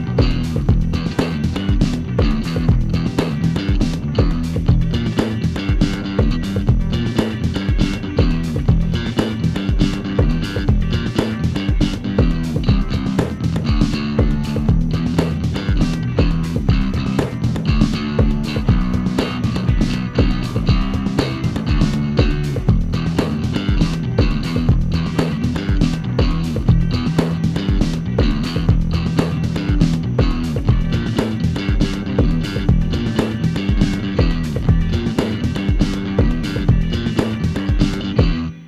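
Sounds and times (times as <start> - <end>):
tube fuzz bass: 0.0 - 38.6.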